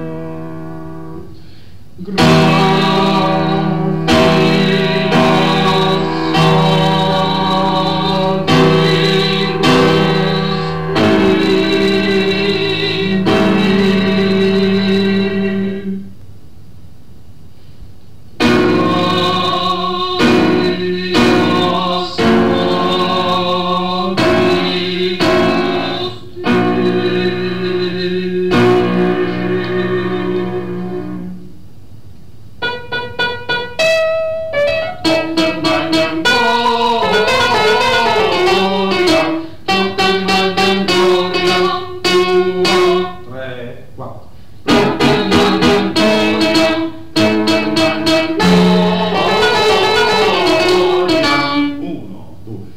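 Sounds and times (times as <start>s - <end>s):
contraltos singing: 2.0s - 16.1s, 18.4s - 31.6s, 32.6s - 43.3s, 44.6s - 52.5s.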